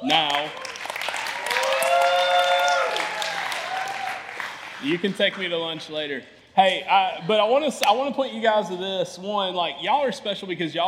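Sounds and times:
audience applause: 0.0 - 5.4
speech: 4.8 - 10.8.

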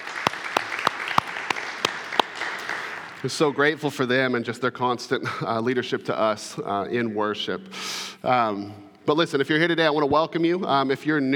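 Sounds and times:
church audience applauding the worship team: 0.0 - 3.6
speech: 3.2 - 11.3.

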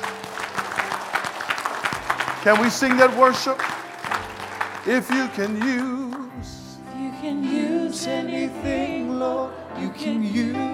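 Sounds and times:
audience clapping: 0.0 - 6.4
speech: 2.4 - 3.7, 4.8 - 6.5, 7.2 - 10.7.

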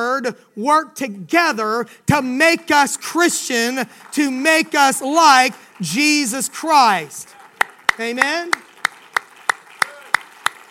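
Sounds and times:
speech: 0.0 - 7.4, 8.0 - 8.6
hands clapping: 3.5 - 10.6.

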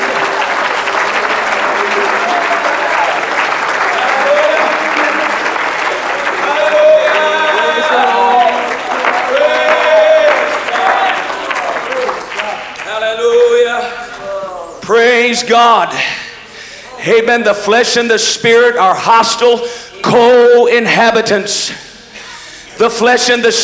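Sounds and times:
audience clapping hands: 0.0 - 17.0
laughter: 0.0 - 23.6
speech: 15.3 - 16.2, 17.0 - 21.9, 22.8 - 23.6.

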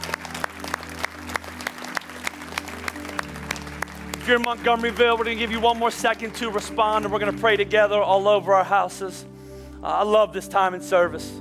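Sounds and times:
audience clapping in rhythm: 0.0 - 7.9
low sustained musical drone: 0.0 - 10.4
speech: 4.3 - 11.4.

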